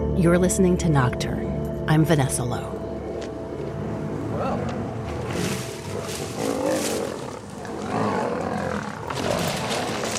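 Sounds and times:
speech: 0.2 - 2.7
male lions tussling and roaring: 2.9 - 10.1.

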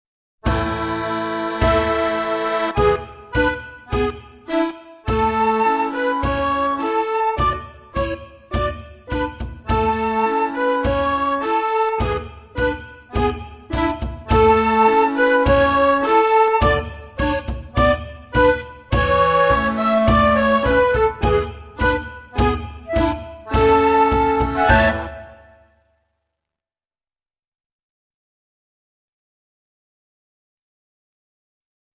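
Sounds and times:
backing track: 0.5 - 25.6.

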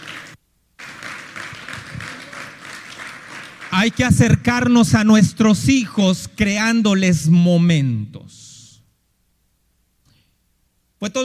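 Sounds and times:
audience applause: 0.0 - 4.7
speech: 3.8 - 8.5, 11.0 - 11.2.

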